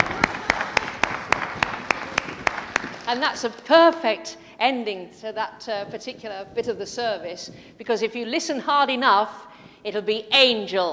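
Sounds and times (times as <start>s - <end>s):
audience clapping: 0.0s - 3.6s
speech: 3.1s - 10.9s.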